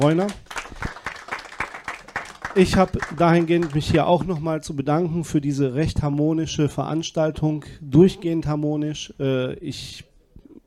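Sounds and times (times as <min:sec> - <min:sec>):
speech: 0:00.0 - 0:00.4, 0:02.6 - 0:10.1
audience applause: 0:00.0 - 0:04.4.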